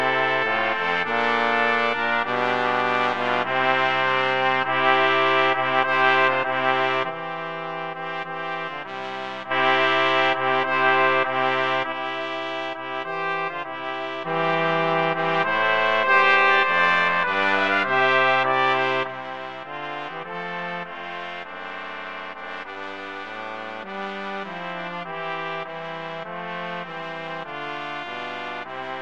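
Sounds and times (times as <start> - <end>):
brass quartet playing an overture: 0.0 - 29.0.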